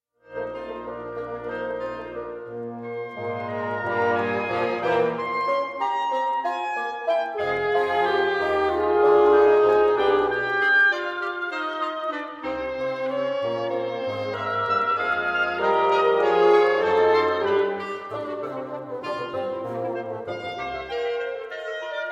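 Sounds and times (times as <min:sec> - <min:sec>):
chamber septet music in E flat major: 0:00.3 - 0:22.1.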